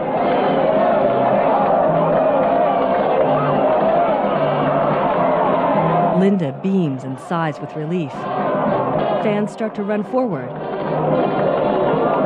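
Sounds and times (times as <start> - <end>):
large crowd cheering: 0.0 - 12.2
speech: 6.2 - 11.5.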